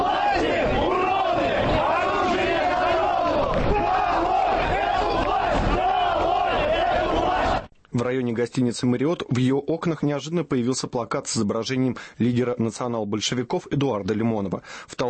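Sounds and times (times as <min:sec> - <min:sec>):
marching crowd chanting slogans: 0:00.0 - 0:07.7
speech: 0:08.1 - 0:15.0.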